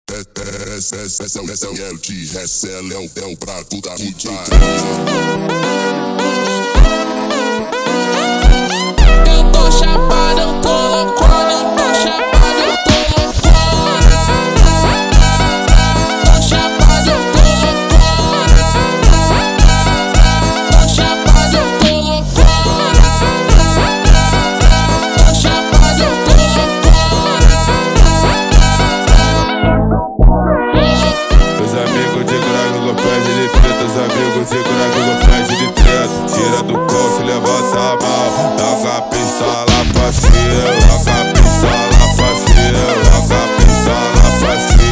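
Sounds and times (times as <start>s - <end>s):
super slowed funk music: 4.5s - 44.9s.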